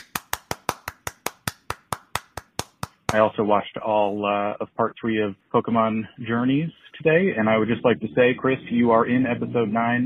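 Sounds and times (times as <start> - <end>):
faint clapping: 0.0 - 3.3
speech: 3.1 - 10.0.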